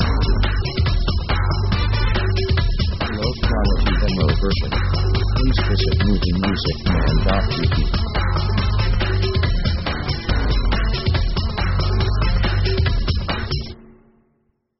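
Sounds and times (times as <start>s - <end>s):
Middle Eastern march music: 0.0s - 13.7s.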